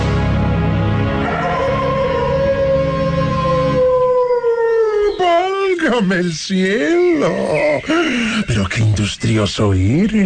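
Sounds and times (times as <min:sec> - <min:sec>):
wolf howling: 0:01.0 - 0:06.1, 0:06.9 - 0:07.9
speech: 0:06.0 - 0:10.2.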